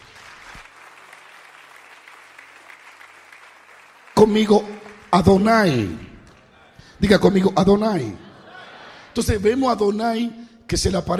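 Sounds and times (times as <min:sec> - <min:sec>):
audience applause: 0:00.0 - 0:06.8
speech: 0:04.2 - 0:06.1, 0:07.0 - 0:08.2, 0:09.2 - 0:11.1
laughter: 0:06.6 - 0:09.5.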